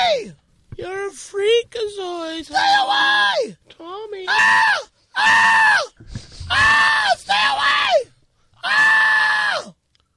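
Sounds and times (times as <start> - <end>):
man screaming: 0.0 - 0.4, 2.5 - 9.8
speech: 0.2 - 8.0.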